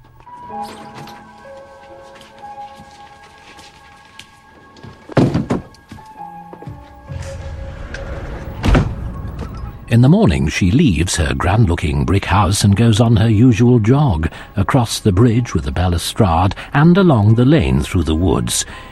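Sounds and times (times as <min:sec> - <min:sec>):
soft sustained musical tones: 0:00.0 - 0:18.9
wardrobe sliding doors being shut: 0:07.0 - 0:09.9
speech: 0:10.0 - 0:18.9.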